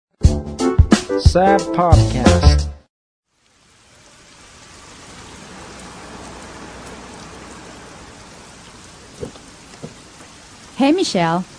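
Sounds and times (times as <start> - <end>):
speech: 1.1 - 2.7, 10.8 - 11.5
heavy rain pouring: 3.3 - 11.5.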